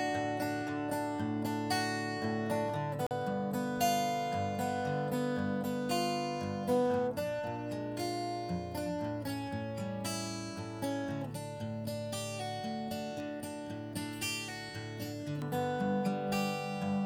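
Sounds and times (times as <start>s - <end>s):
acoustic guitar with waveshaper and EQ: 0.0s - 17.0s.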